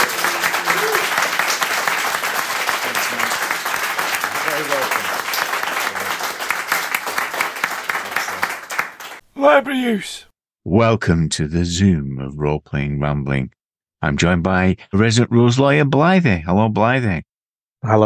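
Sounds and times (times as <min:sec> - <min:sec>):
audience applause at a meeting: 0:00.0 - 0:10.2
speech: 0:09.4 - 0:18.0.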